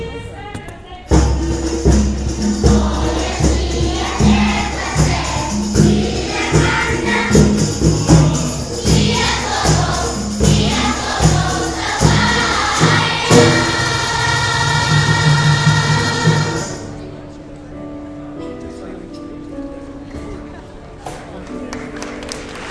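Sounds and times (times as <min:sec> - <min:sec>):
tribal drum beats: 0:01.1 - 0:16.8
children singing: 0:01.2 - 0:16.9.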